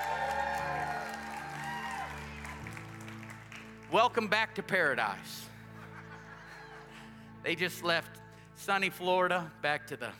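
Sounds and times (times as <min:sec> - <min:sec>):
church congregation applauding: 0:00.0 - 0:04.4
speech: 0:03.9 - 0:05.5, 0:07.4 - 0:10.1
laughter: 0:05.6 - 0:07.3.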